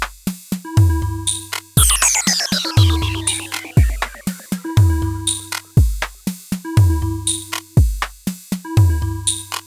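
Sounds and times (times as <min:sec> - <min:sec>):
drums: 0:00.0 - 0:09.6
organ with delay: 0:01.8 - 0:05.8
slow eerie industrial beat: 0:01.8 - 0:05.8
synth: 0:01.8 - 0:05.8.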